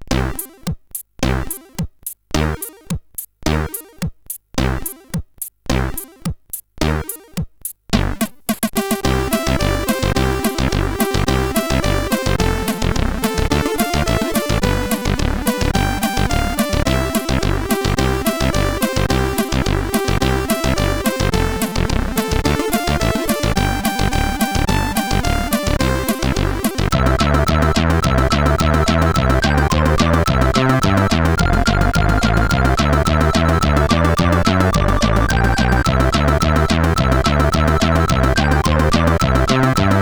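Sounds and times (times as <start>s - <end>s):
chiptune melody on CSG8580R5 chip: 0.1s - 1.8s, 2.4s - 4.0s, 6.8s - 7.4s, 8.0s - 40.0s.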